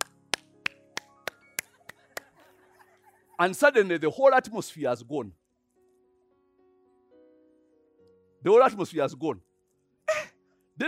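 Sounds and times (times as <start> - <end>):
hand claps: 0.0 - 2.4
laughter: 1.6 - 3.8
speech: 3.4 - 5.4, 8.4 - 9.5.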